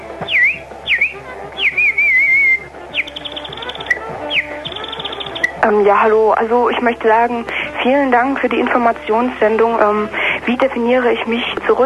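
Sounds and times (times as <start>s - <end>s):
bird whistle instrument chirps and trills: 0.2s - 5.6s
speech: 5.7s - 11.8s.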